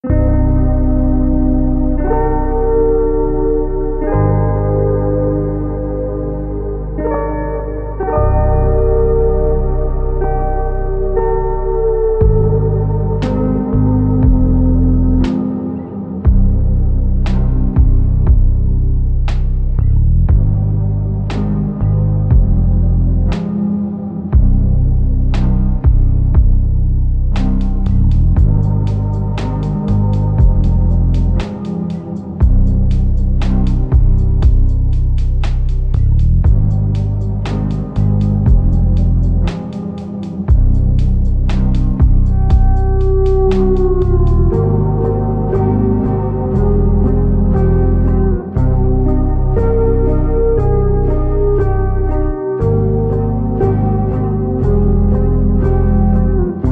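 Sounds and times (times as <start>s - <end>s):
slow instrumental music: 0.0s - 56.7s.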